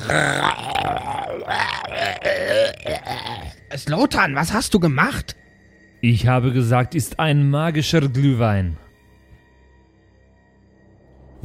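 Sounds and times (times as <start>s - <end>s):
gurgling scream: 0.0s - 3.6s
speech: 0.1s - 5.4s, 6.0s - 8.8s.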